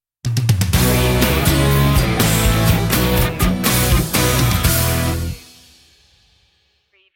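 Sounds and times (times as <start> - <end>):
bright music sting: 0.8 - 5.6.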